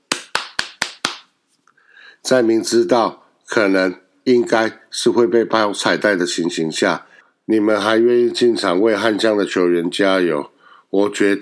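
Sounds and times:
applause: 0.1 - 1.3
speech: 2.2 - 11.3.

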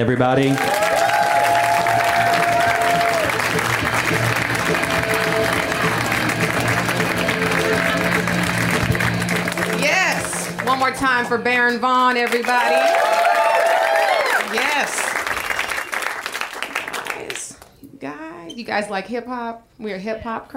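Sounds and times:
speech: 0.0 - 0.8, 10.7 - 13.2, 14.5 - 15.1, 18.6 - 20.5
audience applause: 0.0 - 11.0, 12.1 - 17.5.

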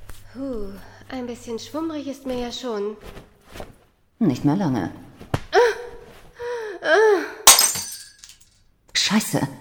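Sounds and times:
speech: 0.3 - 3.3, 4.2 - 5.1, 9.1 - 9.5
glass bottle falling and shattering: 7.5 - 8.5.

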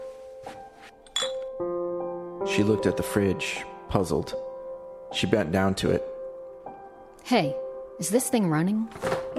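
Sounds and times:
glass beer bottles clinking as one is lifted: 1.0 - 1.6
speech: 2.4 - 4.5, 5.1 - 6.1, 7.3 - 9.2.

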